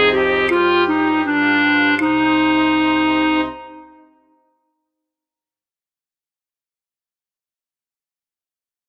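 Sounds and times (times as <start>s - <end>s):
flute orchestra playing: 0.0s - 4.3s.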